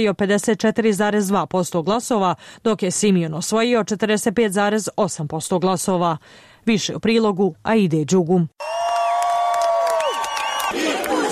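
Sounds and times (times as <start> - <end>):
speech: 0.0 - 8.8
crowd cheering at election celebration in Bucharest: 8.6 - 11.3.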